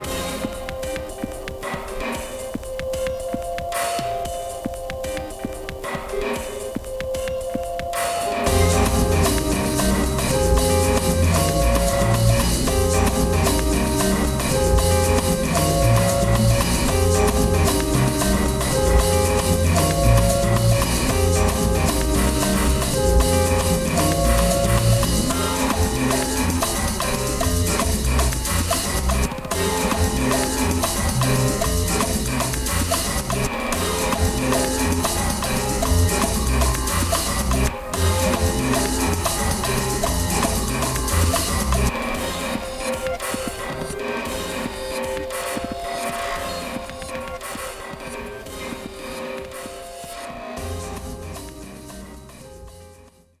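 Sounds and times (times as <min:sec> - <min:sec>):
sampled drum breaks: 0:00.0 - 0:52.8.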